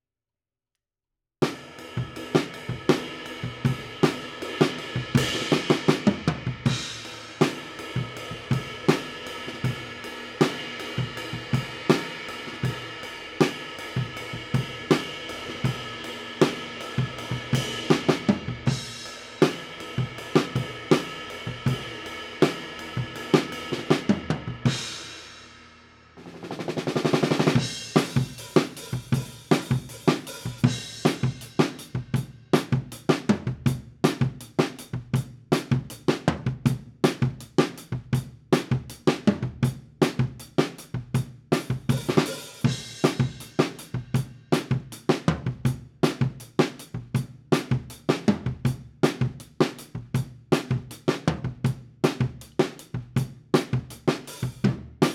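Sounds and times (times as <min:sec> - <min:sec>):
drum kit: 0:01.4 - 0:55.1.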